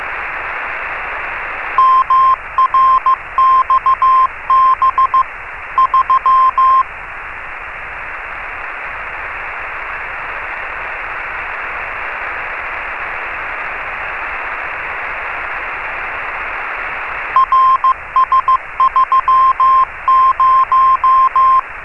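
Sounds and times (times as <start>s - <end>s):
CW beacon: 1.8s - 6.8s, 17.4s - 21.6s.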